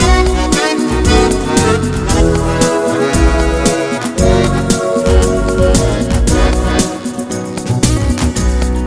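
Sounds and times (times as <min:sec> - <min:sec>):
very smooth ballad: 0:00.0 - 0:08.8.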